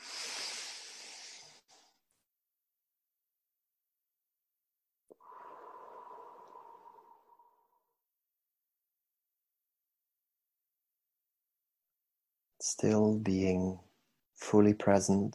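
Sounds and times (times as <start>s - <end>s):
deep breathing during guided relaxation: 0.0s - 2.0s, 5.1s - 8.0s
speech: 12.6s - 13.8s, 14.4s - 15.3s.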